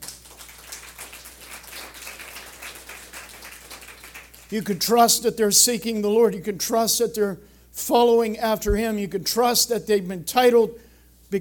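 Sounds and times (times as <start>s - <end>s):
audience applause: 0.0s - 4.5s
speech: 4.5s - 11.3s.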